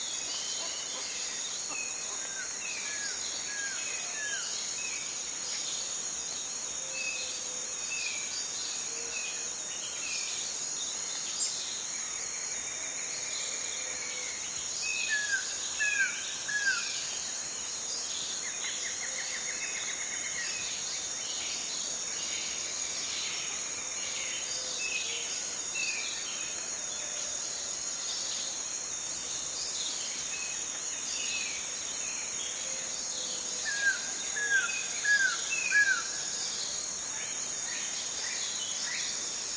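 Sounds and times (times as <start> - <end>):
tropical rainforest morning ambience under the canopy: 0.0 - 39.5.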